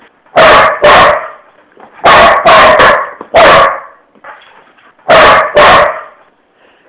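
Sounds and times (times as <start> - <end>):
dog barking: 0.4 - 4.0, 5.1 - 6.2.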